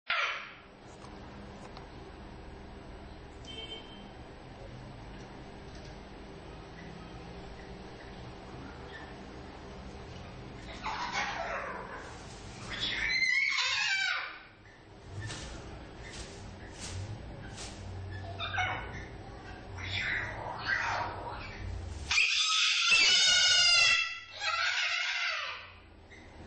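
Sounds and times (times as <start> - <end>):
parrot screeching: 0.1 - 0.6, 10.6 - 14.6, 18.4 - 19.0, 19.8 - 25.8.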